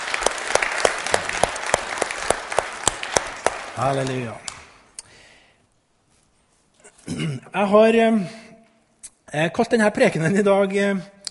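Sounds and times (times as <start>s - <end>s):
audience applauding: 0.0s - 4.8s
speech: 3.8s - 4.5s, 7.2s - 8.4s, 9.3s - 11.2s.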